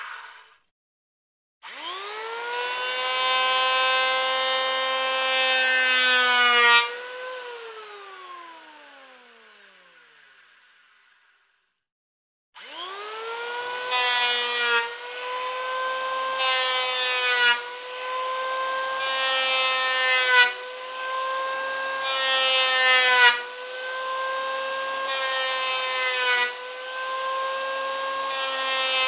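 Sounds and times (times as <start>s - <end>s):
planing wood on a workbench: 2.1s - 8.0s, 13.3s - 29.0s.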